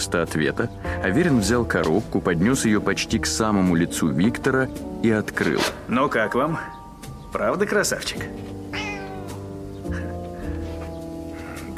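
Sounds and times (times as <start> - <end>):
speech: 0.0 - 8.6
cat meowing: 8.6 - 10.0.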